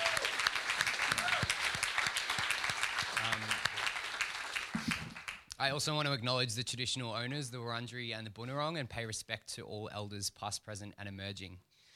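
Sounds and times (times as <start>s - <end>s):
audience applause: 0.0s - 5.4s
speech: 5.6s - 11.7s.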